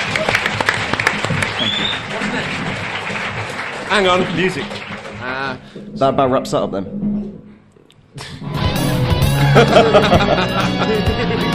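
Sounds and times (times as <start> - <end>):
audience round of applause: 0.0 - 5.8
speech: 3.9 - 7.1, 9.5 - 11.5
laughter: 9.3 - 11.5.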